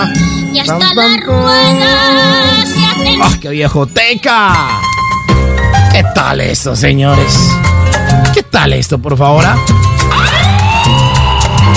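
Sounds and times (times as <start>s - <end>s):
speech: 0.0s - 4.9s, 6.2s - 9.9s
police siren: 10.1s - 11.7s.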